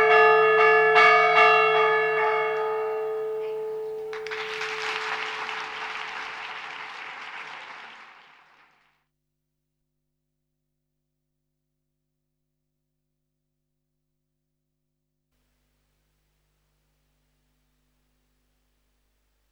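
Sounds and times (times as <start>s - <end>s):
bells ringing a fire alarm peal: 0.0s - 4.6s.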